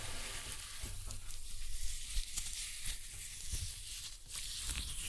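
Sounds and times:
glitter-covered floral foam crushed with crumbling and gritty scraping: 0.0 - 5.0.

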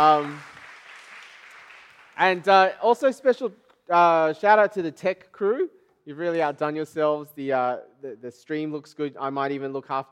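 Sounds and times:
speech: 0.0 - 0.5, 2.2 - 10.0
round of applause: 0.0 - 2.7.

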